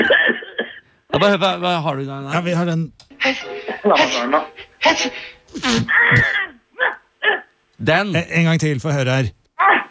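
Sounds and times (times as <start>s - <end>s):
speech: 1.2s - 6.4s, 7.8s - 9.4s
person imitating a sneeze: 5.5s - 7.5s.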